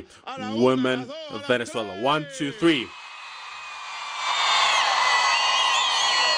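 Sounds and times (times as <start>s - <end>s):
speech: 0.0s - 3.0s
large crowd of women roaring and cheering: 2.9s - 6.3s.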